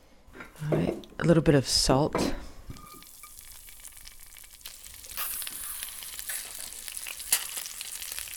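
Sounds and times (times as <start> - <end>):
speech: 0.6 - 2.4
frozen mealworms frying in oil in a flat pan on a burner: 2.8 - 8.3.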